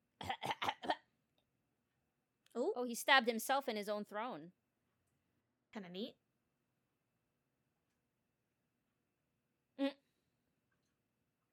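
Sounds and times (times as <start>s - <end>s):
person coughing and clearing throat: 0.1s - 1.1s
speech: 2.8s - 4.6s, 5.7s - 6.2s.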